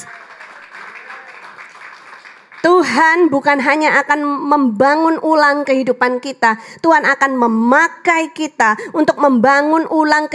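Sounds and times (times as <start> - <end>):
crowd cheering: 0.0 - 2.6
speech: 2.6 - 10.3.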